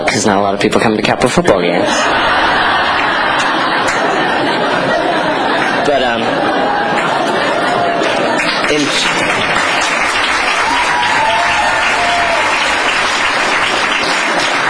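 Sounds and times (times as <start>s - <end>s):
speech: 0.1s - 2.5s, 5.8s - 6.8s, 8.7s - 9.7s
laughter: 1.4s - 13.5s
crowd applause at a public meeting about a school superintendent: 1.8s - 14.6s.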